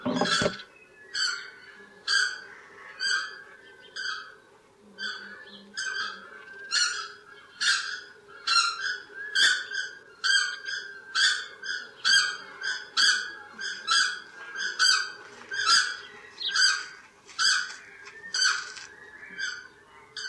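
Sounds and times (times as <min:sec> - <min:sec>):
South Island takahe honking calls: 0:00.0 - 0:01.4, 0:05.1 - 0:20.2.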